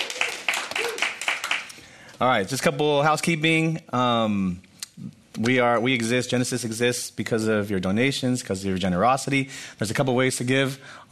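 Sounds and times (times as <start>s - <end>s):
audience clapping: 0.0s - 1.8s
speech: 2.2s - 4.7s, 5.4s - 11.1s.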